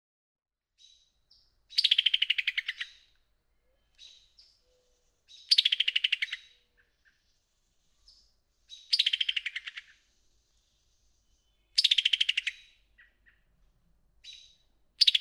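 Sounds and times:
summer tanager clicking calls: 1.7s - 3.2s, 5.3s - 7.2s, 8.7s - 10.0s, 11.8s - 13.5s, 14.2s - 15.1s.

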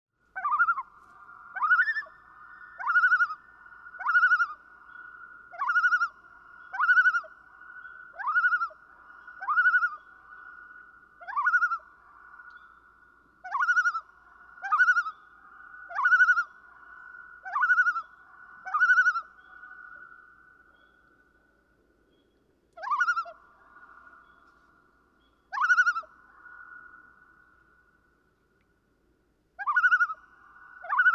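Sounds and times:
common loon calling: 0.4s - 0.9s, 1.5s - 3.4s, 5.5s - 7.3s, 8.1s - 10.1s, 11.2s - 11.9s, 13.4s - 15.2s, 15.9s - 16.6s, 17.4s - 20.1s, 22.8s - 24.6s, 25.5s - 26.1s, 29.6s - 30.2s, 30.8s - 31.1s.

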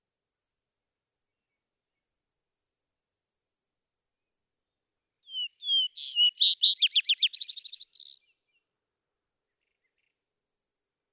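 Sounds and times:
vesper sparrow singing: 5.3s - 8.2s.

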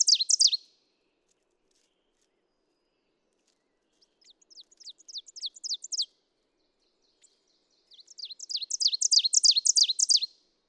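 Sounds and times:
Ovenbird singing chirping phrases: 0.0s - 0.7s, 3.9s - 10.4s.

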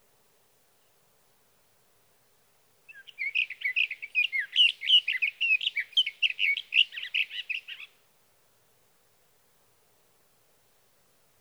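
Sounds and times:
sage thrasher warbling song: 2.9s - 7.9s.

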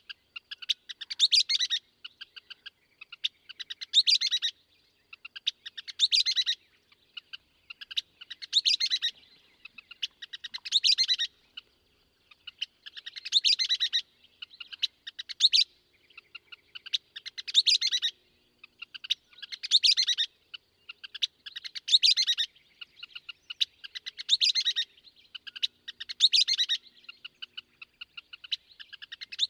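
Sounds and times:
Western Kingbird: 0.0s - 29.4s.

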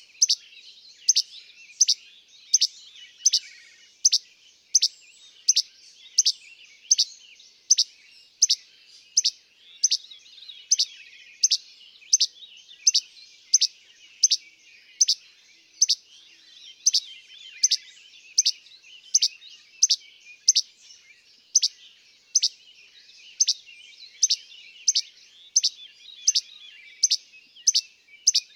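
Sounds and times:
Least Flycatcher calling: 0.0s - 28.5s.

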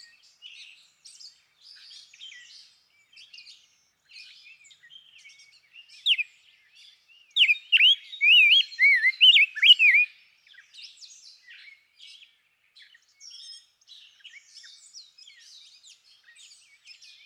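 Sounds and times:
Rose-breasted Grosbeak: 7.4s - 10.1s.

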